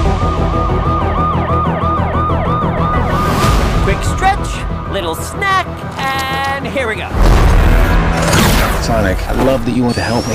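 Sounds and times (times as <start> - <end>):
wailing emergency sirens in the Sonic the Hedgehog 2 movie trailer: 0.0 - 3.8
speech: 5.0 - 10.3.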